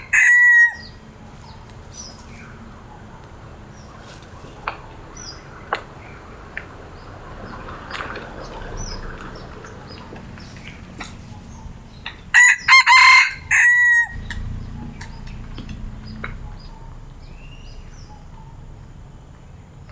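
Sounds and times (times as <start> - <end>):
red junglefowl brief broken crow: 0.0 - 1.0, 12.3 - 14.5.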